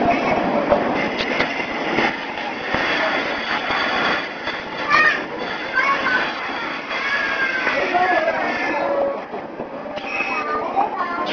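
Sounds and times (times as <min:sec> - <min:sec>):
Jomo Electric Railway Deha 350 train departing Joto Station: 0:00.0 - 0:11.3.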